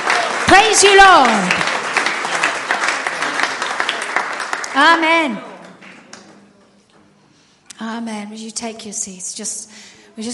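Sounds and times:
audience clapping: 0:00.0 - 0:06.4
speech: 0:00.5 - 0:01.7, 0:04.8 - 0:05.5, 0:07.9 - 0:10.3.

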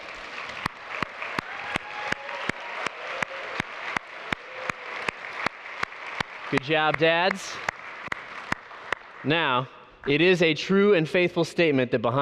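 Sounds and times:
audience cheering: 0:00.0 - 0:08.6
audience applauding: 0:00.0 - 0:10.2
speech: 0:06.5 - 0:07.7, 0:09.2 - 0:12.2.

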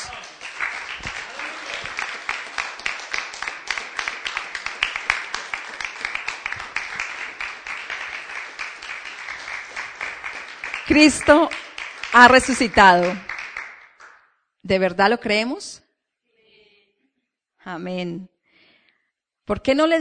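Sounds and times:
audience applauding: 0:00.0 - 0:14.2
speech: 0:10.9 - 0:13.3, 0:14.7 - 0:15.8, 0:17.6 - 0:18.3, 0:19.5 - 0:19.9.

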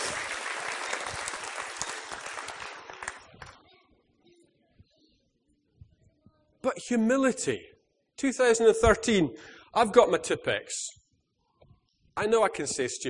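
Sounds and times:
audience applause: 0:00.0 - 0:03.6
speech: 0:06.7 - 0:11.0, 0:12.2 - 0:13.0.

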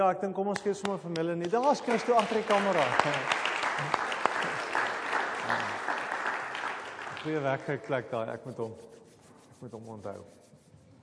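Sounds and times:
speech: 0:00.0 - 0:04.0, 0:07.2 - 0:09.0, 0:09.6 - 0:10.4
audience applause: 0:01.4 - 0:07.9
laughter: 0:05.4 - 0:06.0.

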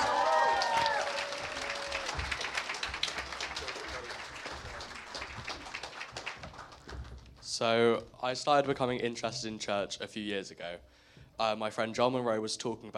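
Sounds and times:
church congregation clapping to welcome a speaker: 0:00.0 - 0:07.5
speech: 0:07.6 - 0:12.9.

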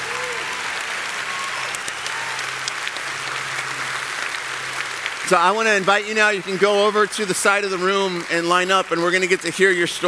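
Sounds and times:
audience applauding: 0:00.0 - 0:10.0
speech: 0:05.3 - 0:10.0.

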